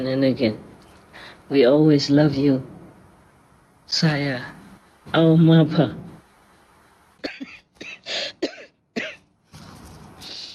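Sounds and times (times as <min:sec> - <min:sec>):
speech: 0:00.0 - 0:02.7, 0:03.9 - 0:06.0
person coughing: 0:07.2 - 0:09.2.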